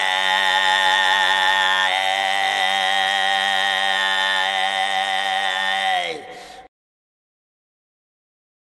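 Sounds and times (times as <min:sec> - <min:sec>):
kargyraa throat singing: 0:00.0 - 0:06.7.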